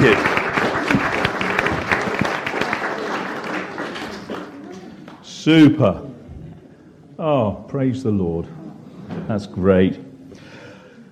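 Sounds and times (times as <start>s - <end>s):
audience clapping: 0.0s - 5.2s
speech: 5.5s - 6.1s, 7.2s - 8.6s, 9.2s - 10.1s.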